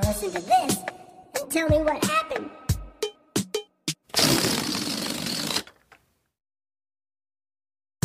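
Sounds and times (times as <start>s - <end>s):
speech: 0.1s - 2.6s
balloon deflating and flying around room: 4.1s - 5.9s.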